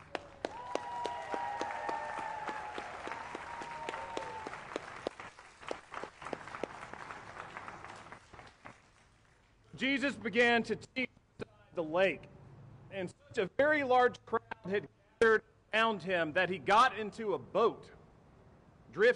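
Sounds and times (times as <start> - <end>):
audience applause: 0.0 - 9.0
speech: 9.8 - 11.2, 11.8 - 12.3, 12.9 - 18.0, 18.9 - 19.1.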